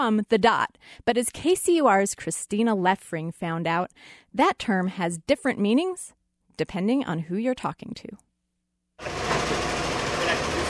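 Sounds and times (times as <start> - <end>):
speech: 0.0 - 8.3, 9.0 - 9.3
embroidery machine stitching a logo onto four blank baseball caps: 9.0 - 10.6.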